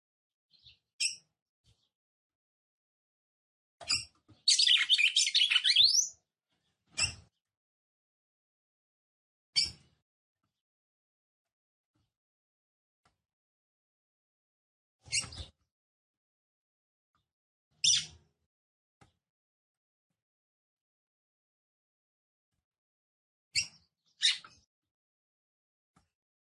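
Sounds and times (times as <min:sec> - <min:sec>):
female red-cowled cardinal chirps: 0:03.9 - 0:06.2, 0:17.8 - 0:18.2, 0:23.6 - 0:24.7.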